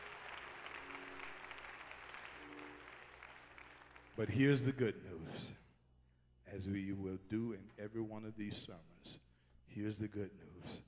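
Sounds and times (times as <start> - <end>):
audience clapping hands: 0.0 - 4.8
speech: 4.2 - 5.6, 6.5 - 10.8.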